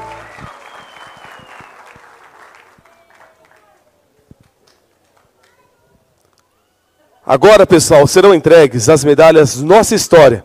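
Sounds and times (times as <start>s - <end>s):
audience applause: 0.0s - 3.8s
speech: 7.3s - 10.4s.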